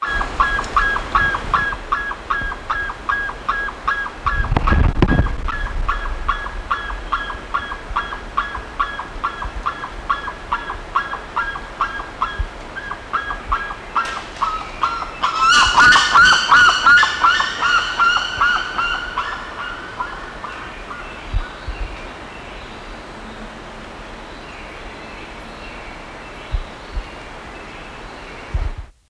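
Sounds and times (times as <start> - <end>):
bird honking calls: 0.0 - 21.2.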